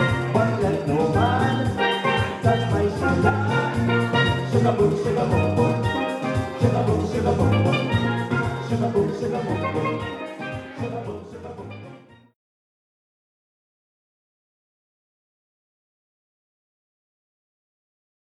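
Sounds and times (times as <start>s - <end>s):
steel drum band playing: 0.0s - 11.1s.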